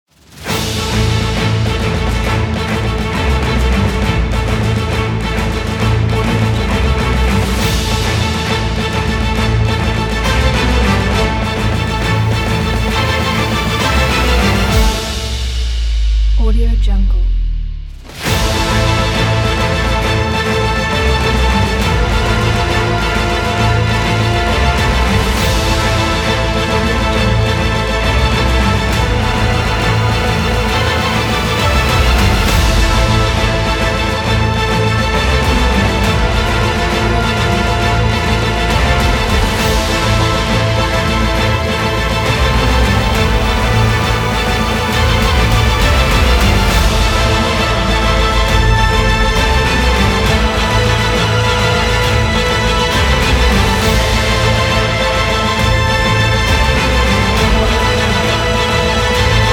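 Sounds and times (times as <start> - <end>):
cinematic Hollywood trailer music: 0.0 - 59.5.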